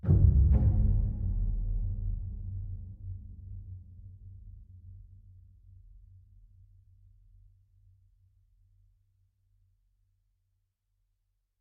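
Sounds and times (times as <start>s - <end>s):
string instrument: 0.0s - 5.1s.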